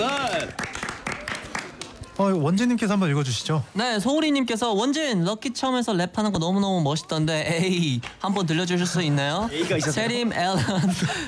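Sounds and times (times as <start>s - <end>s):
people cheering: 0.0s - 2.2s
scattered hand claps: 0.0s - 2.2s
speech: 2.2s - 11.2s
laughter: 9.5s - 11.2s.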